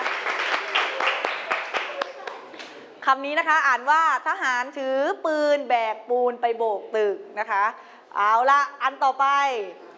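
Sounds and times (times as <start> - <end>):
classroom of children clapping: 0.0 - 2.8
speech: 3.1 - 9.8.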